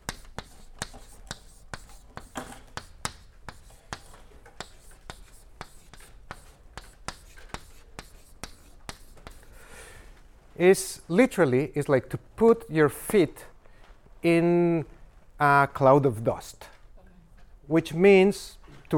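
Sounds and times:
pen writing by hand: 0.0 - 9.4
speech: 10.6 - 13.5, 14.2 - 16.7, 17.7 - 18.9.

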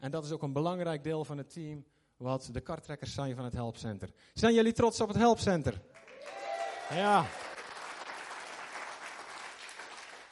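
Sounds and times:
speech: 0.0 - 7.5
audience applause: 6.0 - 10.3.

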